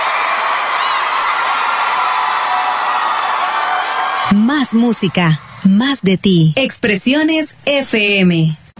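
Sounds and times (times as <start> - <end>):
audience applause: 0.0 - 4.3
speech: 4.4 - 8.6.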